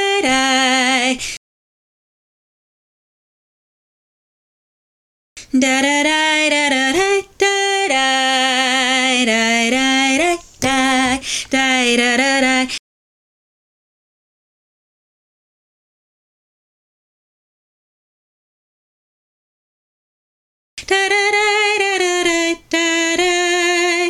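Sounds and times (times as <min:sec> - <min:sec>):
alto voice singing chorus drill: 0:00.0 - 0:01.4, 0:05.4 - 0:12.8, 0:20.8 - 0:24.0.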